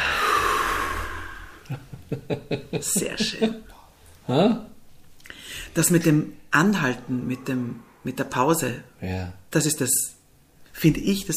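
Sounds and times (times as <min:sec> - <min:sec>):
slow exhale during a relaxation breathing exercise: 0:00.0 - 0:01.7, 0:05.2 - 0:05.7
laughter: 0:01.7 - 0:03.7
speech: 0:01.7 - 0:03.7, 0:04.3 - 0:04.7, 0:05.7 - 0:10.2, 0:10.8 - 0:11.3.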